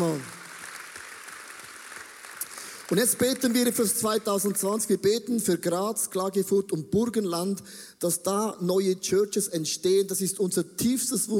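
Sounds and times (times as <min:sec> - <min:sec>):
speech: 0:00.0 - 0:00.4, 0:02.9 - 0:11.3
audience applause: 0:00.0 - 0:04.6.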